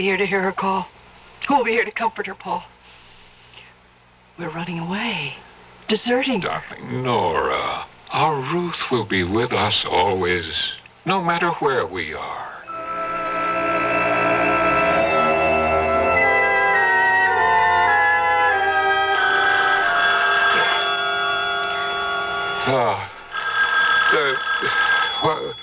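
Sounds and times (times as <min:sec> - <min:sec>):
speech: 0:00.0 - 0:02.7, 0:04.4 - 0:12.5, 0:22.7 - 0:23.1, 0:24.6 - 0:25.6
telephone ringing: 0:12.7 - 0:25.6.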